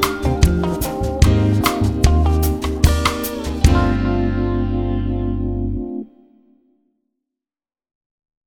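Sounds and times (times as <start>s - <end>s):
1960s lounge cafe music: 0.0s - 6.1s.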